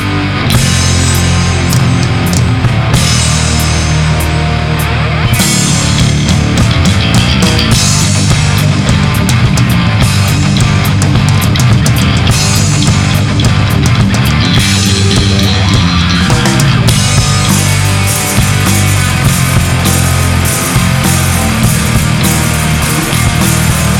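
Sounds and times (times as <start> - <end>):
karaoke singing: 0.1 - 23.9.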